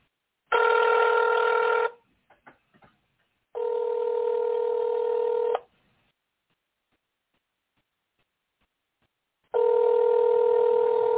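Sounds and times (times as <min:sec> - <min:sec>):
phone ring-back tone: 0:00.5 - 0:02.0, 0:03.6 - 0:05.6, 0:09.5 - 0:11.1.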